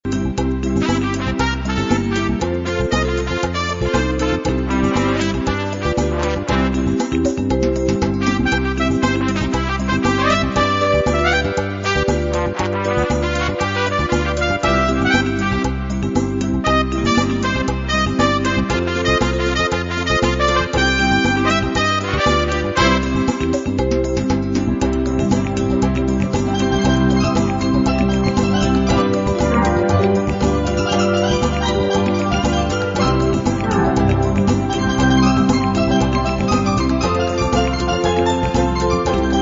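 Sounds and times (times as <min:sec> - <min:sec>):
samba music: 0:00.0 - 0:39.4.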